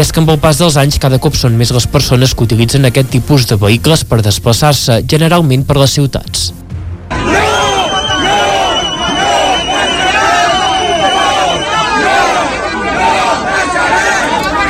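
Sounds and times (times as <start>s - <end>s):
speech: 0.1s - 6.6s
crowd of protesters shouting and yelling during street clash: 7.1s - 14.6s.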